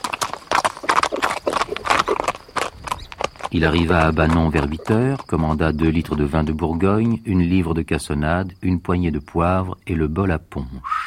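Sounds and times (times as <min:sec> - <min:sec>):
horse trotting hooves: 0:00.0 - 0:08.6
speech: 0:03.5 - 0:11.0.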